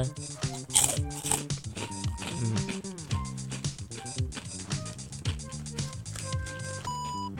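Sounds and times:
person mumbling while chewing: 0:00.0 - 0:04.0
crunching rice crackers: 0:00.5 - 0:07.3.

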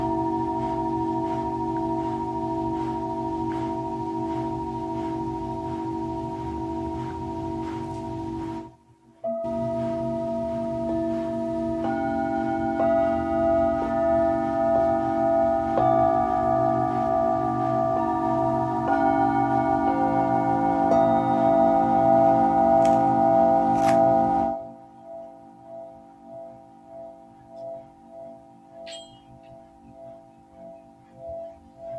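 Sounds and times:
Tibetan singing bowls ringing: 0:00.0 - 0:31.9.

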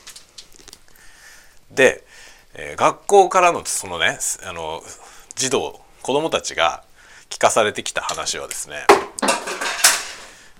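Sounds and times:
speech: 0:01.7 - 0:09.1
clothes hanger falling and clattering: 0:09.2 - 0:10.3.

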